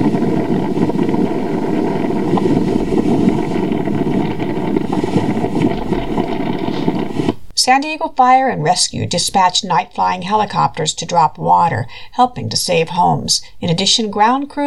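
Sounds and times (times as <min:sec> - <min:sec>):
howling Santa Ana wind at night during a fire: 0:00.0 - 0:07.5
speech: 0:07.7 - 0:14.6.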